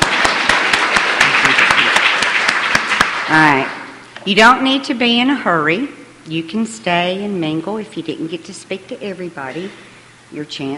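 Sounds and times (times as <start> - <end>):
audience clapping: 0.0 - 3.9
speech: 3.3 - 10.7.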